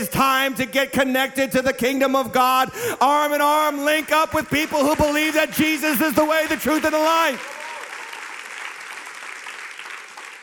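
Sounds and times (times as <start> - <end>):
speech: 0.0 - 7.6
audience clapping: 3.7 - 10.4.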